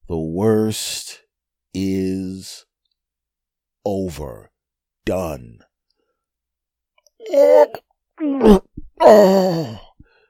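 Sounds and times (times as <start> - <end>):
speech: 0.4 - 2.7, 3.8 - 5.7, 7.3 - 9.8
person groaning from an overfull, nauseous stomach: 7.2 - 9.9.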